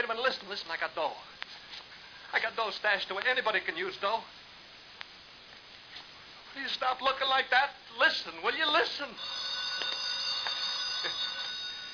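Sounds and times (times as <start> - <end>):
speech: 0.1 - 1.4, 2.3 - 4.4, 6.6 - 9.9
telephone bell ringing: 8.7 - 11.9.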